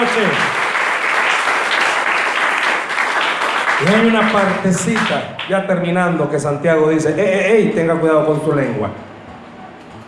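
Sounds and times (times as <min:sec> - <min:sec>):
audience applause: 0:00.0 - 0:05.5
speech: 0:00.1 - 0:00.6, 0:03.8 - 0:09.1.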